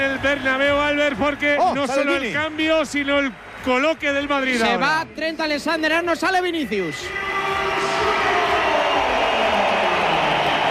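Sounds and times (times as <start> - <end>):
stadium crowd applauding: 0.0 - 10.6
speech: 0.2 - 7.7.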